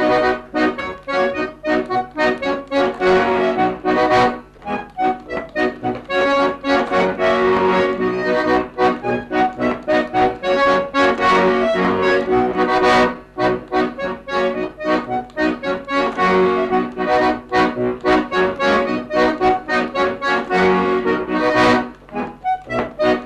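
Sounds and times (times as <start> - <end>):
folk music: 0.0 - 23.2.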